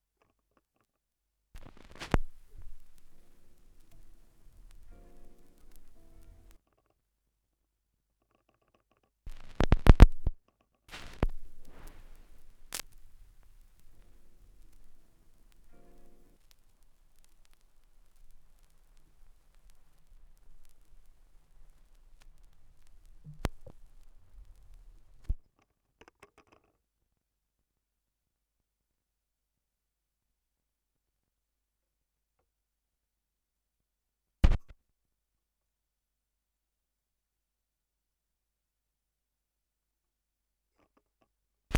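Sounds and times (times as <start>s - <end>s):
vinyl record noise: 1.6s - 6.6s, 9.3s - 25.4s, 34.4s - 34.7s.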